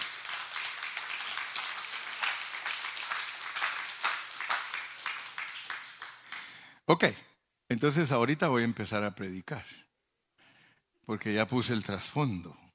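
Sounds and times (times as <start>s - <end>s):
audience clapping: 0.0s - 6.7s
speech: 6.9s - 9.8s, 11.1s - 12.6s.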